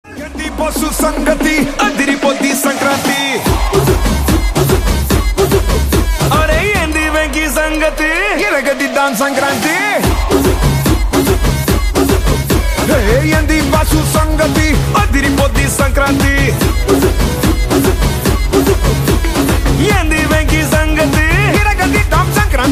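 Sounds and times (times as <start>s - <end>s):
Sankranthi DJ ringtone music: 0.1s - 22.7s.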